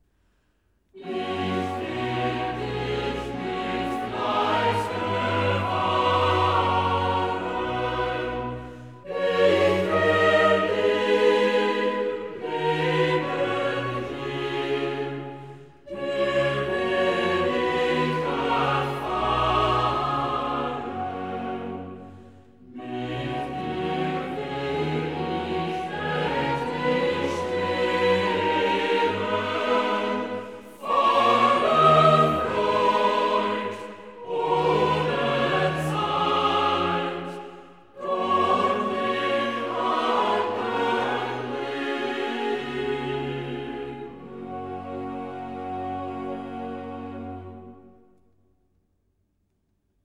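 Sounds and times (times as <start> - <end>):
chorale: 0.0 - 48.4.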